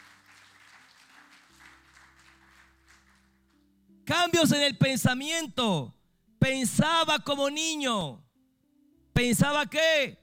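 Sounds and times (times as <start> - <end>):
audience applauding: 0.0 - 3.6
speech: 4.1 - 8.2, 9.2 - 10.2.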